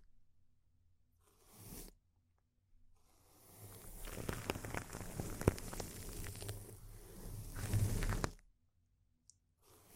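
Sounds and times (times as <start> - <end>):
intense crinkling of plastic or paper: 4.0 - 6.6, 7.5 - 8.3.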